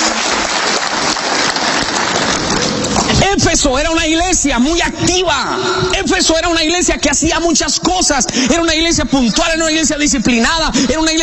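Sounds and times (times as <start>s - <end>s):
audience applause: 0.0s - 3.4s
speech: 3.3s - 11.2s.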